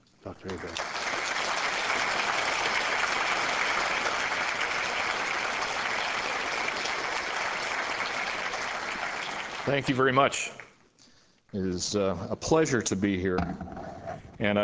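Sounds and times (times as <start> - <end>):
speech: 0.2 - 1.0, 9.7 - 10.6, 11.5 - 13.8, 14.4 - 14.6
audience applause welcoming a lecturer: 0.4 - 10.7.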